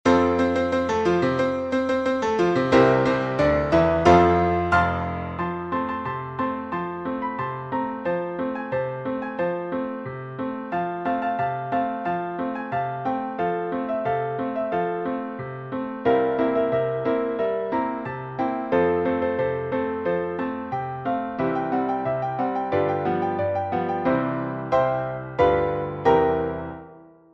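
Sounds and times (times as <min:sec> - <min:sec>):
piano: 0:00.0 - 0:27.3.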